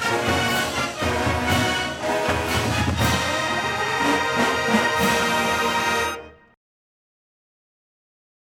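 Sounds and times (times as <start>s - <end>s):
fanfare: 0.0s - 6.6s.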